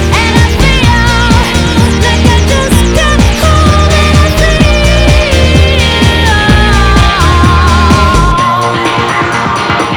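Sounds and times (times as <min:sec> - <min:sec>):
pop music: 0:00.0 - 0:09.9.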